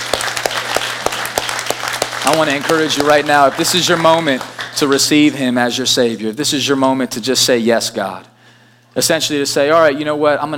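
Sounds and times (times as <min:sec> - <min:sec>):
audience clapping: 0:00.0 - 0:05.4
speech: 0:02.2 - 0:08.3, 0:09.0 - 0:10.5.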